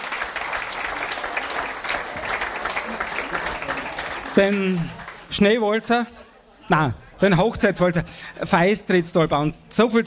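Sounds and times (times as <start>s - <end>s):
applause: 0.0s - 5.4s
speech: 4.4s - 10.0s.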